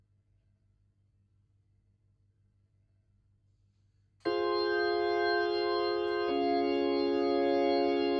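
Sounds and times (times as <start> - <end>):
Hammond organ through a Leslie speaker: 4.3 - 8.1.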